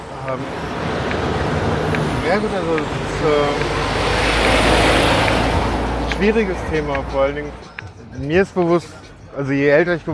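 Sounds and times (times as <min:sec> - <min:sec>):
engine whine: 0:00.0 - 0:07.8
busy street traffic: 0:00.0 - 0:10.1
speech: 0:00.3 - 0:00.9, 0:02.3 - 0:04.7, 0:06.2 - 0:10.1.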